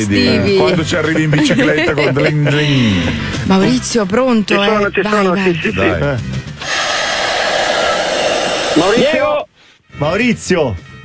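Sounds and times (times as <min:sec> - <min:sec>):
speech: 0:00.0 - 0:06.5, 0:08.8 - 0:09.3, 0:09.9 - 0:11.0
laughter: 0:00.2 - 0:03.4
person inflating an air mattress: 0:06.6 - 0:09.3.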